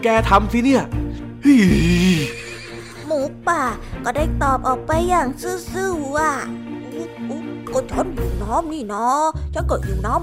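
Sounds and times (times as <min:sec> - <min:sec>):
speech: 0:00.0 - 0:02.4, 0:03.2 - 0:10.2
horse neighing: 0:01.5 - 0:03.1.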